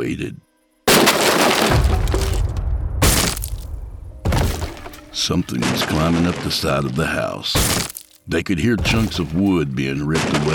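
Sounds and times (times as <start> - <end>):
speech: 0.0 - 0.5, 5.2 - 10.5
window glass shattering: 0.9 - 6.7, 7.6 - 8.2, 8.8 - 10.5.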